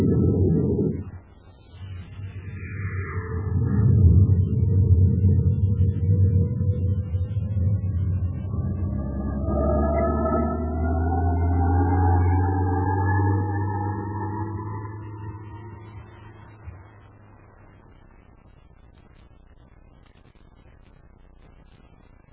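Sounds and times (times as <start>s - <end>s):
rocket engine firing at launch: 0.0s - 17.0s.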